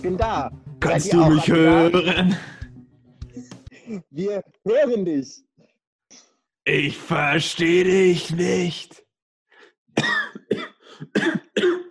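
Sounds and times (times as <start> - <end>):
speech: 0.0 - 2.6, 3.4 - 5.5, 6.1 - 9.0, 10.0 - 11.9
laughter: 0.9 - 2.6
cough: 10.0 - 11.9.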